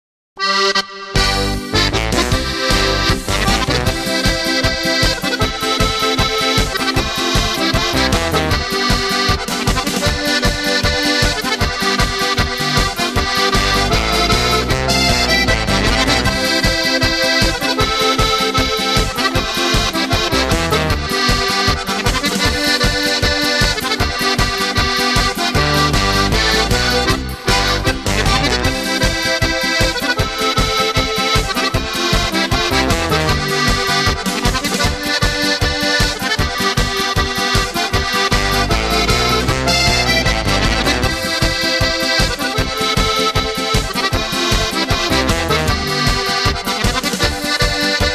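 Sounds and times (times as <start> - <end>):
polka music: 0.4 - 48.1.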